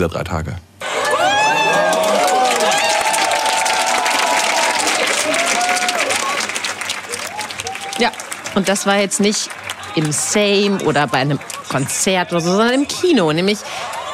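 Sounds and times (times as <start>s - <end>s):
speech: 0.0s - 0.7s, 8.0s - 14.0s
cheers and whoops: 0.8s - 8.3s, 13.8s - 14.1s
cinema audience applauding: 0.8s - 14.1s.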